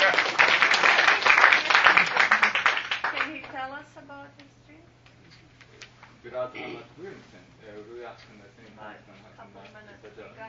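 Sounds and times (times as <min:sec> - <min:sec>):
audience applause: 0:00.0 - 0:03.5
speech: 0:06.2 - 0:10.4.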